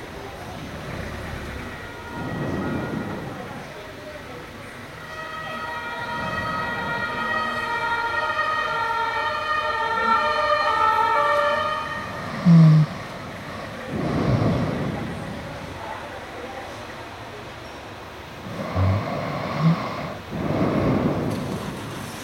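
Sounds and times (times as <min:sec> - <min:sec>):
vehicles passing: 0:00.0 - 0:22.2
city siren heard through an open window: 0:00.9 - 0:14.2.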